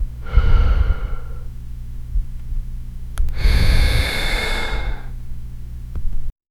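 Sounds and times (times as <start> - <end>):
slow breathing: 0.2 - 1.6, 3.3 - 5.2.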